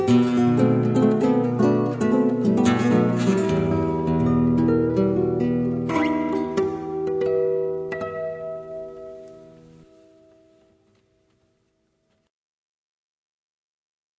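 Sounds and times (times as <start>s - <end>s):
gypsy guitar: 0.0s - 10.6s.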